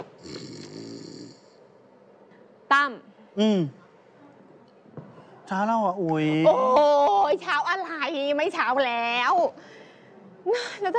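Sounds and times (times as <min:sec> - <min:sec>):
man asleep on a sofa snoring: 0:00.2 - 0:01.6
speech: 0:02.8 - 0:03.8, 0:05.5 - 0:09.7, 0:10.4 - 0:10.9.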